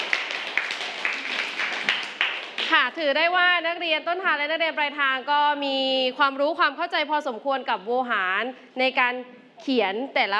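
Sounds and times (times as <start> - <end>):
classroom clapping for a student group: 0.0 - 2.9
speech: 2.7 - 10.3.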